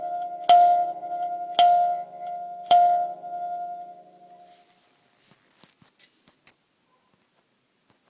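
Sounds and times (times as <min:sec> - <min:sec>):
mbira in Mazingizi tuning: 0:00.0 - 0:04.6.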